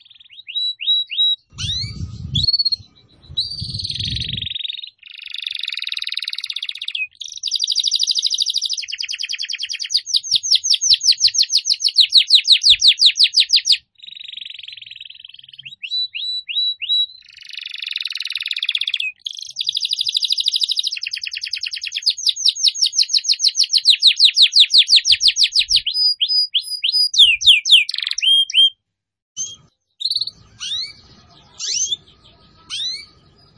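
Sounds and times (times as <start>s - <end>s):
Atlantic canary singing: 0.0s - 28.8s, 29.4s - 33.5s
low rumbling noise: 1.5s - 4.6s.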